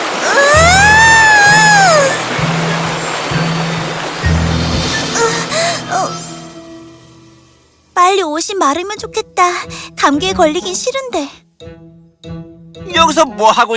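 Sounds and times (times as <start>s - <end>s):
big wave of water crashing: 0.0s - 6.5s
wavering whistle-like tone: 4.3s - 6.6s
speech: 8.6s - 11.8s, 12.9s - 13.7s.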